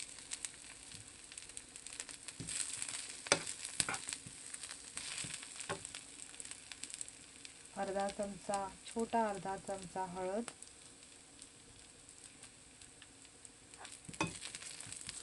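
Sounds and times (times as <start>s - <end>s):
onion with green and red chilies frying in a pan: 0.0s - 15.2s
speech: 7.8s - 10.6s.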